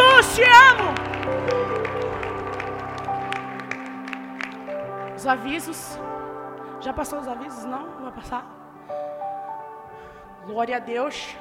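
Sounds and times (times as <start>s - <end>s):
audience clapping in scattered bursts: 0.0s - 6.6s
sustained humming keyboard chords: 0.0s - 11.3s
speech: 5.2s - 6.2s, 6.8s - 9.0s, 10.4s - 11.3s.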